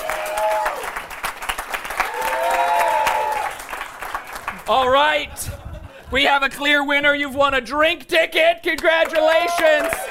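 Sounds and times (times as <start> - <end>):
audience applause: 0.0 - 5.3, 9.0 - 10.0
speech: 4.7 - 10.0.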